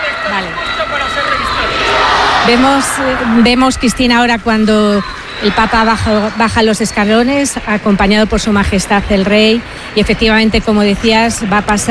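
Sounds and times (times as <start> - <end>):
crowd shouting and cheering: 0.0 - 8.9
speech: 0.2 - 1.2, 2.4 - 11.8.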